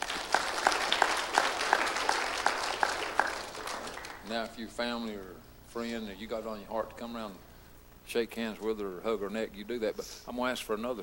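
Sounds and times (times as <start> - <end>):
audience applause: 0.0 - 4.3
speech: 4.3 - 7.5, 8.1 - 11.0.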